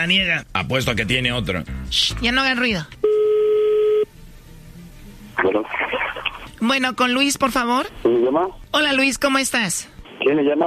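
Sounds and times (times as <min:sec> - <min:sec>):
speech: 0:00.0 - 0:03.0, 0:05.4 - 0:06.0, 0:06.6 - 0:10.6
telephone tone while dialling: 0:03.0 - 0:04.1.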